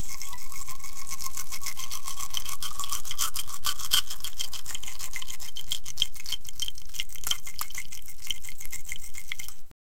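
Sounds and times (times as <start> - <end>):
food preparation: 0.0 - 9.7.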